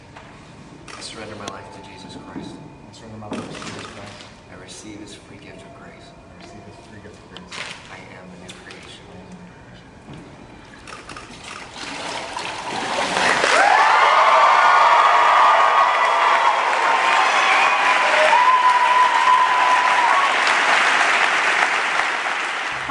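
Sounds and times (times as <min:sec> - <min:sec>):
speech: 0:01.1 - 0:09.4
audience clapping: 0:13.2 - 0:22.8.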